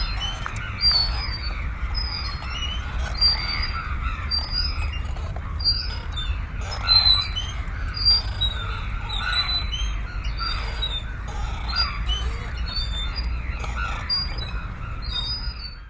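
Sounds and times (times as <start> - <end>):
swing music: 0.0 - 15.8.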